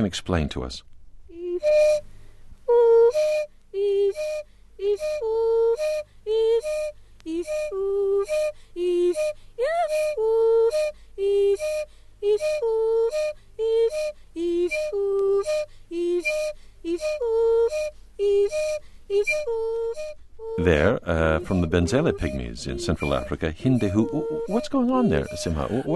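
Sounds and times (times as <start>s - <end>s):
speech: 0.0s - 0.9s, 16.5s - 25.9s
man whistling one single note: 1.6s - 2.0s, 3.0s - 3.5s, 4.1s - 11.0s, 11.6s - 25.9s
man singing: 20.6s - 25.9s.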